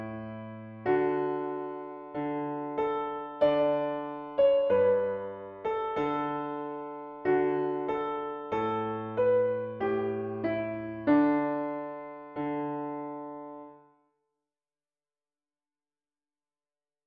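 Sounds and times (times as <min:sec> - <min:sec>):
piano piece: 0:00.0 - 0:14.0.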